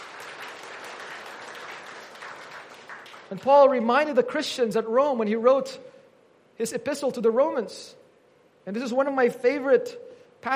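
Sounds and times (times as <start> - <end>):
audience clapping in praise: 0.0 - 3.9
speech: 3.3 - 5.9, 6.6 - 8.0, 8.6 - 10.5.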